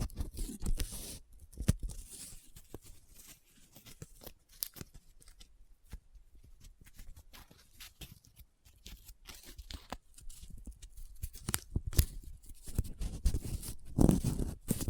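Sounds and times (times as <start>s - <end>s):
paper handled with crinkling, rubbing and scratching: 0.0s - 14.8s.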